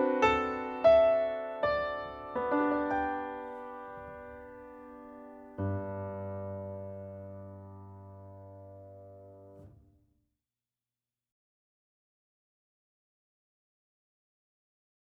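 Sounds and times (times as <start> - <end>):
prelude music: 0.0 - 9.6.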